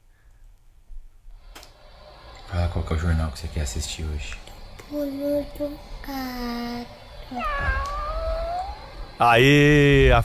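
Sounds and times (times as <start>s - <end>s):
steady low hum: 0.0s - 10.2s
speech: 2.8s - 8.0s, 9.2s - 10.2s
cat meow: 7.3s - 9.2s.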